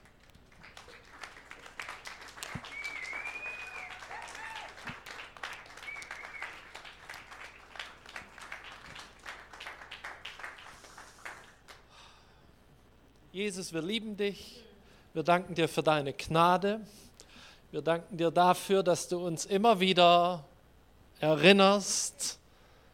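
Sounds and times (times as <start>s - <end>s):
congregation applauding in church: 0.0s - 11.9s
speech: 13.4s - 14.6s, 15.2s - 17.0s, 17.7s - 20.5s, 21.2s - 22.4s.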